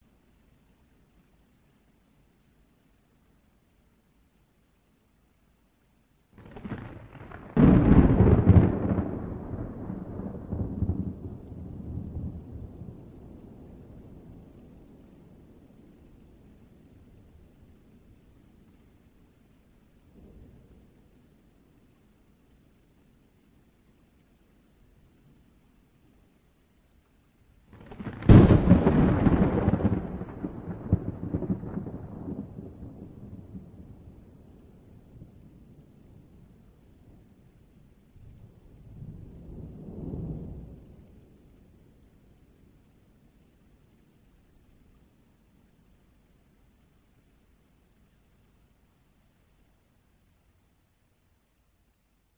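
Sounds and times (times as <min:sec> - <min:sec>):
thunder claps in a storm: 0:06.4 - 0:13.3, 0:27.8 - 0:34.2.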